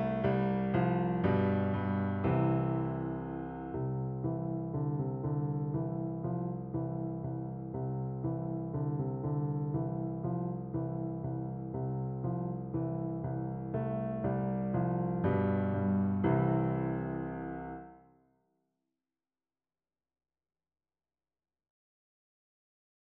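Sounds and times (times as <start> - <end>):
piano duet: 0.0 - 18.0.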